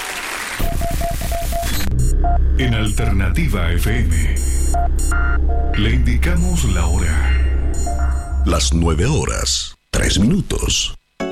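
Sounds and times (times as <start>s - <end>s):
loud applause: 0.0s - 0.7s
faint repeating tone: 1.9s - 8.8s
speech: 2.2s - 11.0s.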